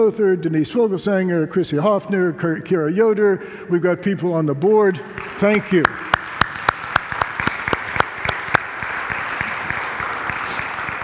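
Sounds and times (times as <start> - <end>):
speech: 0.0 - 6.1
audience applause: 5.2 - 11.0.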